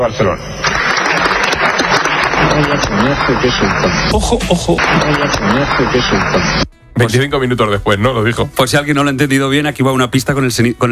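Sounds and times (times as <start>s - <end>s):
speech: 0.0s - 0.6s, 2.4s - 10.9s
audience applause: 0.6s - 6.6s.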